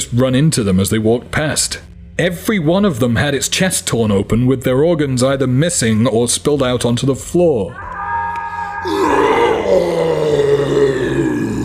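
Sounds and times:
speech: 0.1 - 7.9, 8.8 - 10.1
massive demon of a man groaning and yelling: 7.8 - 11.6
person screaming: 7.8 - 11.6.

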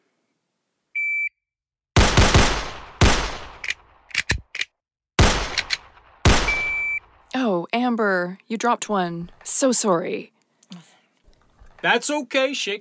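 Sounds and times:
pistol shots on a shooting range course: 2.0 - 4.4, 5.2 - 7.2
shooting range electronic start beep: 6.5 - 7.0
speech: 7.9 - 10.9, 11.8 - 12.7
faint clicks: 10.4 - 11.9.

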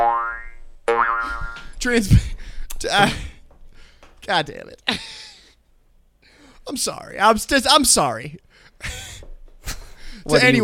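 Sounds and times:
cartoon boing sound effect: 0.0 - 1.5
speech: 1.8 - 3.3, 4.2 - 5.2, 6.7 - 9.1, 10.2 - 10.6.

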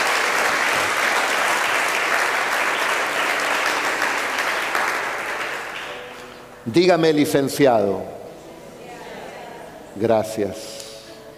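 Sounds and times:
audience applause: 0.0 - 6.0
speech: 6.7 - 8.2, 10.0 - 10.7.

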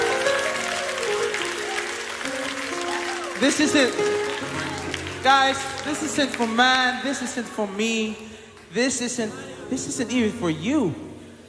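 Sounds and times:
audience applause: 0.0 - 8.8
speech: 3.4 - 11.0.

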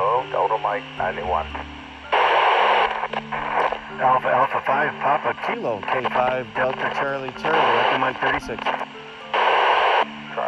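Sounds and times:
faint hum: 0.0 - 10.4
radio transmission cutting out with static: 0.0 - 10.4
speech: 0.4 - 1.8, 3.1 - 8.8.

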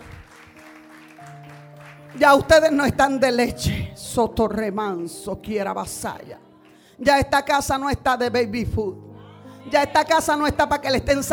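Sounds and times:
audience applause: 0.0 - 2.2
speech: 2.2 - 9.0, 9.6 - 11.3.

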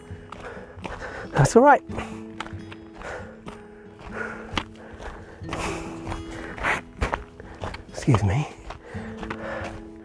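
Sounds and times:
footsteps on a path going downhill in full sun: 0.0 - 10.0
speech: 1.3 - 2.2, 8.0 - 8.6.

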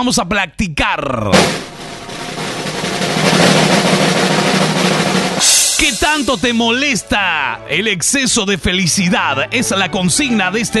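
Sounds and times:
speech: 0.0 - 1.7, 5.8 - 10.7
drum roll: 1.4 - 6.8.

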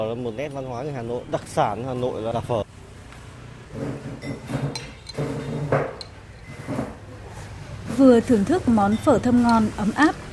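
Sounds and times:
speech: 0.0 - 2.6, 8.0 - 10.2
bowls and chopsticks clinking: 4.2 - 6.7, 8.9 - 10.3.

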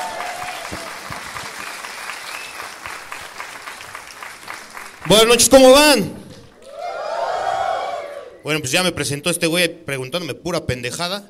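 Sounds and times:
audience applause: 0.0 - 5.6
speech: 5.1 - 6.2, 8.4 - 11.2.

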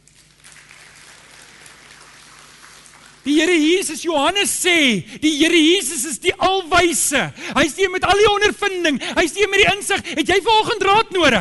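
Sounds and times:
audience clapping: 0.0 - 4.0
speech: 3.2 - 11.3.

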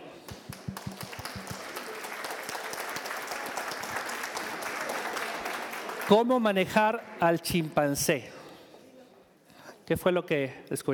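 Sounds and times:
audience applause: 0.3 - 6.4
speech: 6.1 - 8.4, 9.9 - 10.9.

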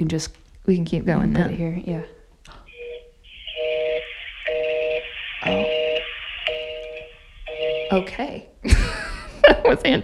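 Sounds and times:
speech: 0.0 - 2.6, 5.5 - 5.8, 7.9 - 8.9, 9.5 - 10.0
buzzing ringback tone of an outgoing phone call: 2.7 - 8.3.

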